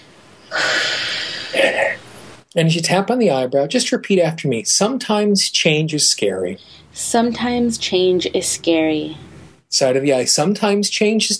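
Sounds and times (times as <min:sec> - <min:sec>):
deep inhale during an EFT tapping exercise: 0:00.0 - 0:01.9, 0:06.6 - 0:07.0
speech: 0:02.6 - 0:11.3.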